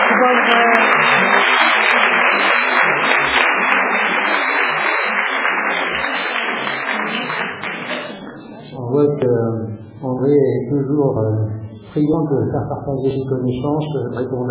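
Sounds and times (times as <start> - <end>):
audience applause: 0.0 - 8.8
speech: 9.2 - 14.4.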